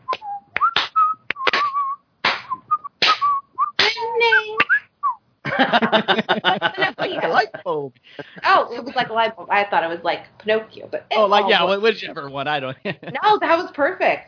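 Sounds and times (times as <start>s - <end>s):
person whistling a short wavering tune: 0.0s - 5.2s
sharp clap-like hits: 0.1s - 4.8s
laughter: 5.4s - 9.4s, 11.5s - 13.4s
speech: 5.6s - 14.2s.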